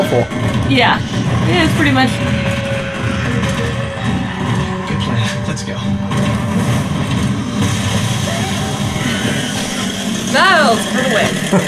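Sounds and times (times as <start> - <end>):
speech: 0.0 - 2.6, 10.3 - 11.6
chainsaw running: 0.3 - 11.6.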